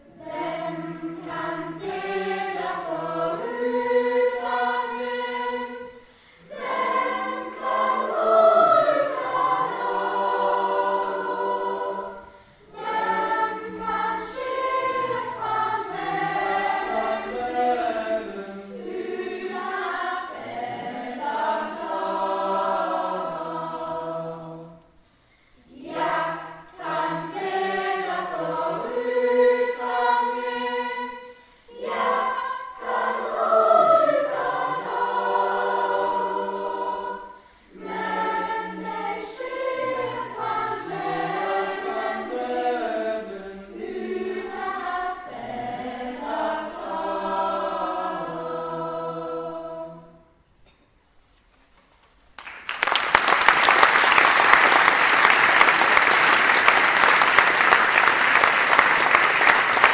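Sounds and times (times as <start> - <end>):
lower school choir and choir singing: 0.0 - 25.0, 25.6 - 50.4, 53.4 - 59.9.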